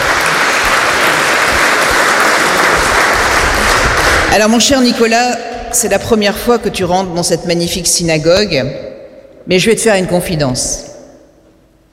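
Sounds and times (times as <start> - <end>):
audience applauding: 0.0 - 4.7
speech: 4.4 - 10.9.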